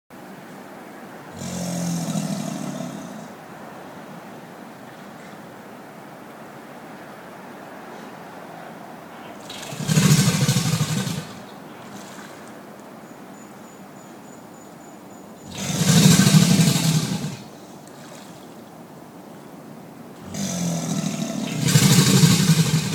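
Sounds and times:
American alligator bellowing: 0:01.3 - 0:03.4, 0:09.3 - 0:12.0, 0:15.4 - 0:17.6, 0:20.2 - 0:22.9.

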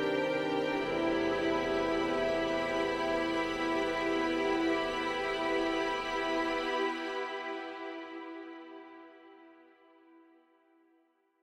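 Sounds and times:
developing harmony: 0:00.0 - 0:08.8.

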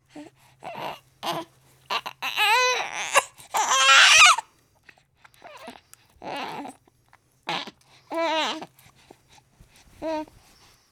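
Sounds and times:
baby crying and grunting: 0:00.6 - 0:04.4, 0:05.4 - 0:06.8, 0:07.5 - 0:08.7.

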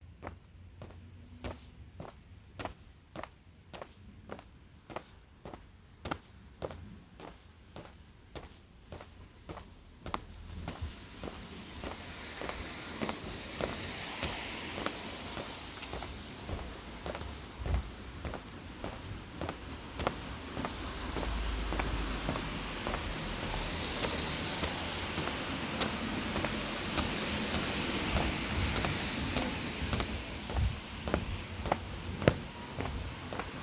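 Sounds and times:
footsteps in the city: 0:00.2 - 0:33.6
rain in the city: 0:11.0 - 0:15.7, 0:19.8 - 0:31.1.

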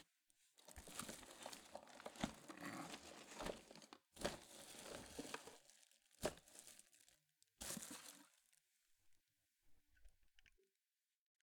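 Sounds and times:
items filling and being organised in a box: 0:00.6 - 0:08.4.

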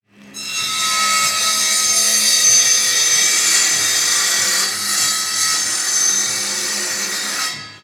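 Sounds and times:
distant wood table saw: 0:00.1 - 0:07.8.

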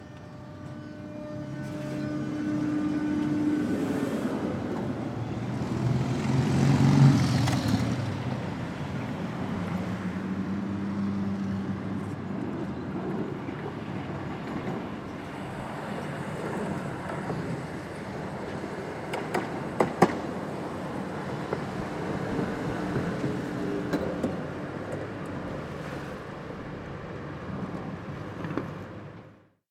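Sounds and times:
traffic: 0:00.0 - 0:29.4
tramways: 0:00.0 - 0:29.4.

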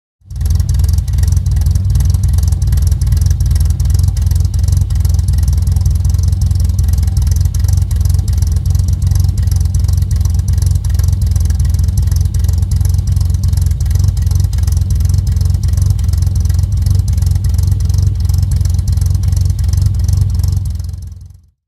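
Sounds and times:
Vauxhall Chevette engine idling: 0:00.2 - 0:21.5.

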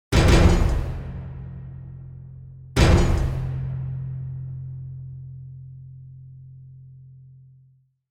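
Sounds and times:
trailer music ending: 0:00.1 - 0:05.4.

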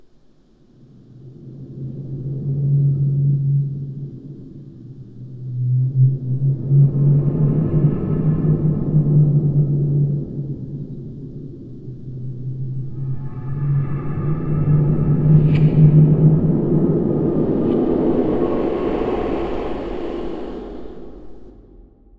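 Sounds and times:
spooky wind: 0:00.8 - 0:22.1.

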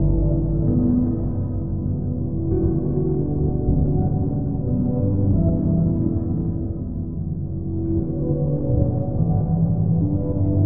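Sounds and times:
ambient piano loop: 0:00.0 - 0:10.6.

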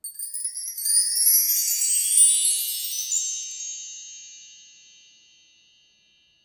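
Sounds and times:
chimes rising in pitch: 0:00.0 - 0:04.4.

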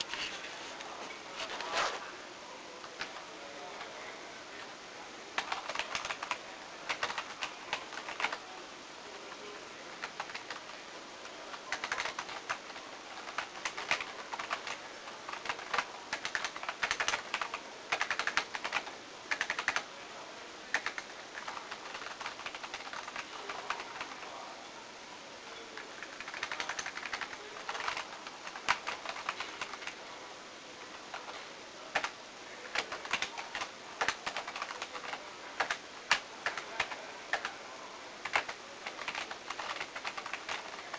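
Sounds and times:
office ambience: 0:00.0 - 0:40.9.

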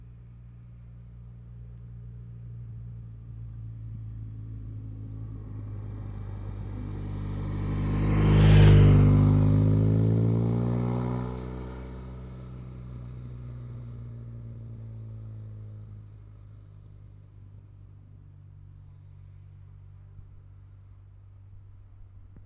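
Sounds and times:
motorcycle passing at 40 km per hour: 0:02.8 - 0:19.3.

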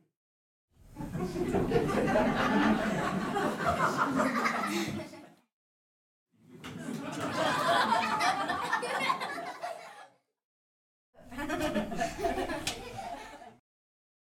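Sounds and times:
small sitcom audience laughing: 0:00.9 - 0:05.5, 0:06.4 - 0:10.3, 0:11.2 - 0:13.6.

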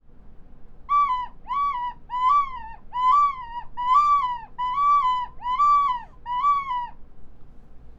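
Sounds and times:
seagulls: 0:00.9 - 0:07.0.

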